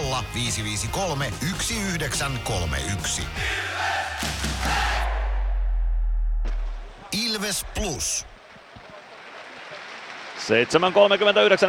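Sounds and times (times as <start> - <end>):
speech: 0.2 - 4.8, 7.1 - 8.3, 10.4 - 11.6
large arena crowd roaring and clapping: 3.5 - 5.8, 6.4 - 11.6.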